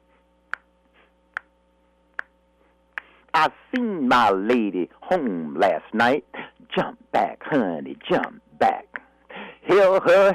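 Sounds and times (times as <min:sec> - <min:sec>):
finger snapping rhythm: 0:00.5 - 0:00.7, 0:01.3 - 0:01.5, 0:02.9 - 0:03.1, 0:04.5 - 0:04.7
speech: 0:03.4 - 0:08.8, 0:09.7 - 0:10.3.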